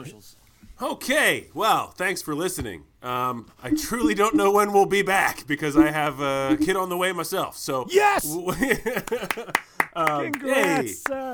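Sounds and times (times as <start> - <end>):
speech: 0.0 - 11.3
voices laughing or cheering: 7.9 - 9.8, 10.4 - 11.3
sharp hand claps: 9.0 - 11.3.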